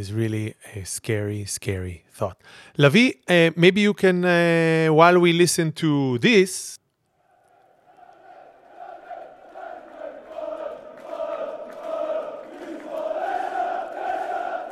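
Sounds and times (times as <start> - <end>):
speech: 0.0 - 6.8
football fans singing a chant: 7.9 - 14.7.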